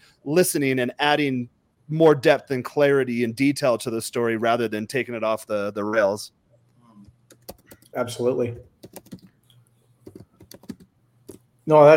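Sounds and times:
speech: 0:00.2 - 0:06.4, 0:07.9 - 0:09.2, 0:11.7 - 0:11.9
quick typing on a computer keyboard writing notes: 0:07.3 - 0:08.0, 0:08.6 - 0:09.4, 0:10.0 - 0:11.4.

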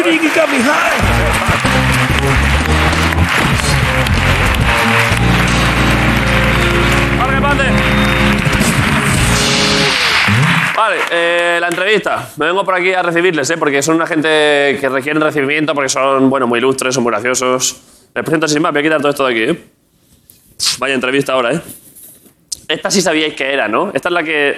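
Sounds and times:
audience applause: 0:00.0 - 0:11.7
speech: 0:00.1 - 0:02.4, 0:10.8 - 0:19.7, 0:20.6 - 0:21.8, 0:22.6 - 0:24.5
music: 0:00.9 - 0:10.8.

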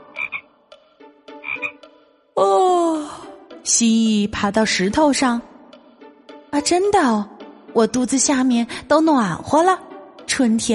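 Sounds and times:
frogs croaking: 0:00.0 - 0:00.7, 0:01.3 - 0:01.9
speech: 0:03.7 - 0:05.5, 0:06.6 - 0:09.8, 0:10.4 - 0:10.7.

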